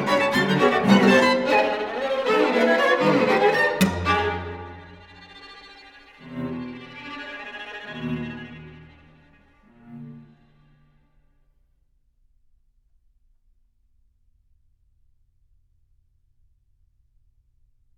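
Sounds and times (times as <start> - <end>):
string quartet: 0.0 - 11.2.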